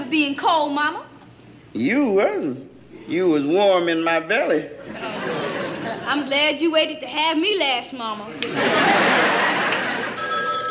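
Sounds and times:
speech: 0:00.1 - 0:01.1, 0:01.7 - 0:05.4, 0:06.1 - 0:09.4
laughter: 0:04.8 - 0:06.2, 0:08.3 - 0:10.2
telephone ringing with a jangling bell: 0:10.2 - 0:10.6.

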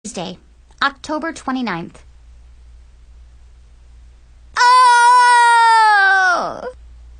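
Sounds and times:
speech: 0:00.2 - 0:02.1
person screaming: 0:04.6 - 0:06.8.

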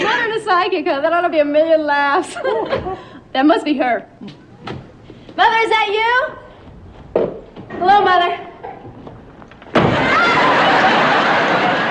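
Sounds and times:
speech: 0:00.4 - 0:04.8, 0:05.4 - 0:06.4, 0:07.8 - 0:08.5
door slamming shut: 0:09.5 - 0:10.4
laughter: 0:09.8 - 0:11.8.

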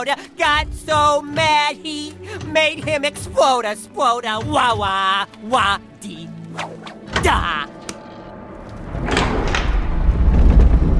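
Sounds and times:
speech: 0:00.0 - 0:07.8
heavy ancient trap door grinding open: 0:08.4 - 0:10.9.

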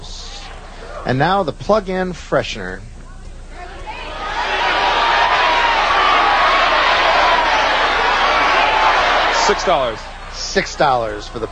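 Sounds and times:
speech: 0:01.1 - 0:02.9, 0:09.5 - 0:11.5
studio audience cheering and applauding: 0:03.6 - 0:11.5.

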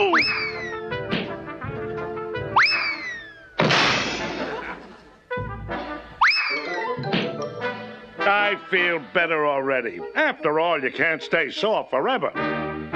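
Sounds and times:
cartoon music: 0:00.0 - 0:12.9
cartoon medicine ball heavy crashing thumps with hissing tail: 0:01.0 - 0:01.7, 0:03.6 - 0:04.8
laughter: 0:04.1 - 0:05.3, 0:06.5 - 0:07.1
speech: 0:08.5 - 0:12.6.

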